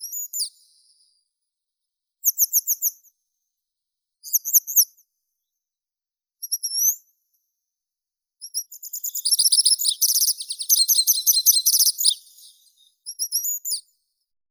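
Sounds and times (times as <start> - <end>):
grey wagtail Motacilla cinerea calling: 9.1 - 12.8.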